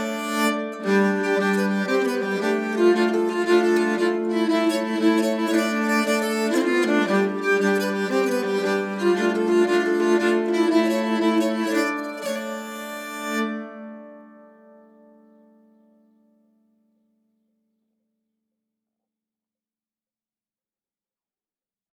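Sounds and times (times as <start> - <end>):
nyckelharpa playing a polska: 0.0 - 14.0.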